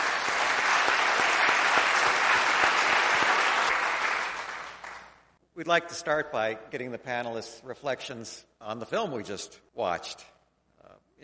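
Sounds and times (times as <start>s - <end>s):
audience applauding to welcome panelists at a panel discussion: 0.0s - 5.3s
speech: 5.6s - 10.3s.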